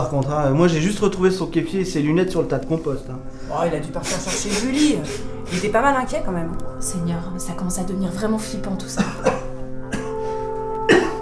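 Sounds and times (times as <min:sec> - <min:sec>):
speech: 0:00.0 - 0:09.4
person coughing: 0:09.0 - 0:10.2, 0:10.9 - 0:11.1.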